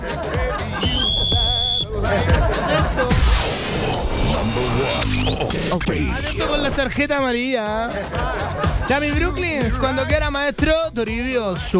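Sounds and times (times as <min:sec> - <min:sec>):
laughter: 0:00.0 - 0:05.0, 0:07.6 - 0:10.2
referee whistle blowing: 0:00.8 - 0:02.0
speech: 0:05.8 - 0:11.7.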